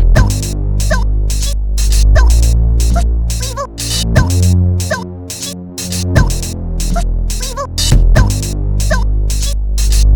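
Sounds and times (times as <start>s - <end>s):
supersaw hoover synth: 0.1s - 10.1s.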